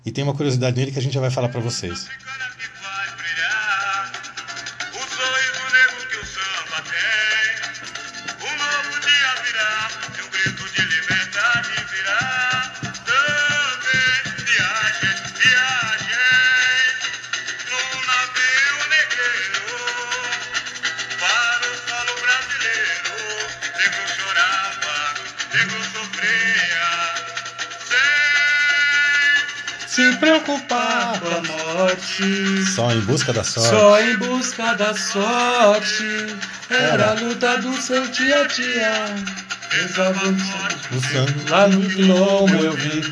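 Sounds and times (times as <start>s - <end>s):
speech: 0.0s - 2.7s, 30.2s - 43.0s
samba song recording playing: 1.0s - 43.0s.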